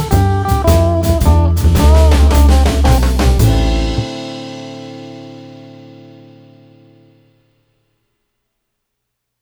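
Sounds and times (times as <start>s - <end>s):
street double bass guitar shuffle: 0.0s - 5.4s.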